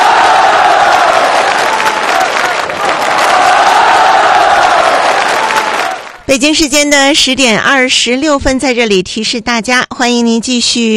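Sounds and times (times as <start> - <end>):
audience applause after a performance: 0.0 - 6.2
cheers: 0.0 - 6.2
speech: 6.4 - 10.9.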